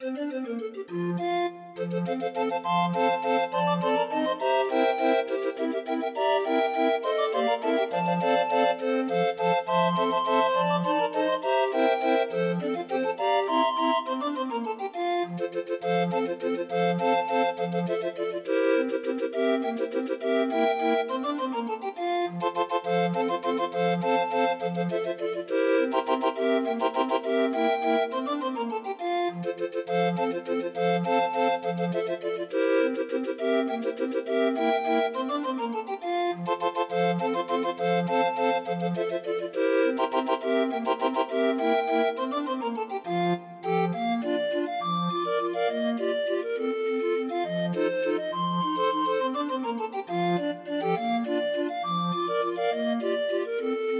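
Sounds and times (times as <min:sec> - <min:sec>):
barrel organ playing a waltz: 0:00.0 - 0:53.9.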